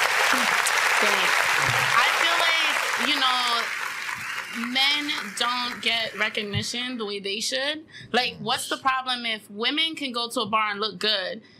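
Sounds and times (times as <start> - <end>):
crowd applause: 0.0 - 6.5
speech: 0.3 - 2.1, 3.0 - 3.8, 4.5 - 11.5.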